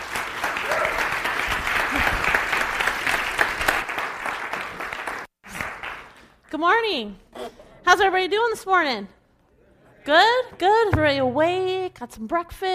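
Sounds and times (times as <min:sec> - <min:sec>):
crowd applauding: 0:00.0 - 0:06.2
speech: 0:06.6 - 0:09.2, 0:10.0 - 0:12.7.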